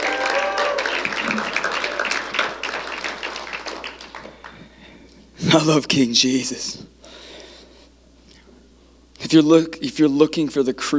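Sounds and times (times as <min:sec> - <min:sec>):
church congregation clapping at an Easter service: 0:00.0 - 0:04.8
speech: 0:05.5 - 0:06.8, 0:09.3 - 0:10.9.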